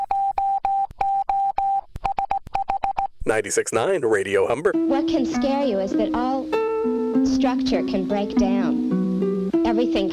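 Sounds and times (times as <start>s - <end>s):
Morse code electronic beeps: 0.0s - 3.1s
speech: 3.3s - 6.6s, 7.2s - 8.9s, 9.8s - 10.1s.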